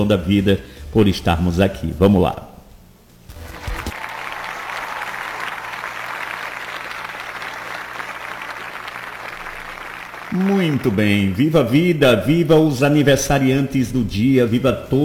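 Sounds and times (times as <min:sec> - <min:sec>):
speech: 0:00.0 - 0:02.5, 0:10.4 - 0:15.0
gathered crowd applauding at a religious celebration of the day: 0:03.4 - 0:11.8.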